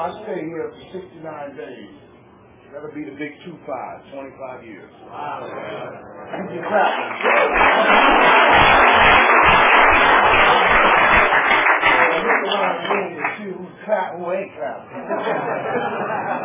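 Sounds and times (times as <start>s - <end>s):
speech: 0.0s - 2.1s, 2.7s - 9.1s, 12.5s - 16.4s
cheers and chatter: 5.1s - 13.2s
crowd clapping: 6.4s - 13.5s
scattered laughter: 14.9s - 16.4s.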